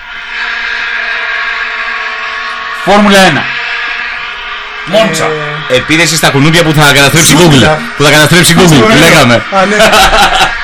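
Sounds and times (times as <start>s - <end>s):
many vuvuzela horns blaring: 0.0s - 9.5s
speech: 2.8s - 3.6s, 4.8s - 10.6s
laughter: 8.4s - 10.6s.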